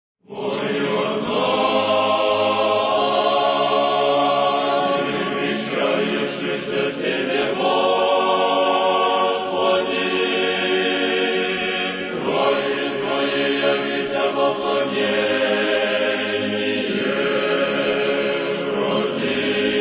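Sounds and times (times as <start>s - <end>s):
seminary choir singing hymn: 0.2s - 19.7s.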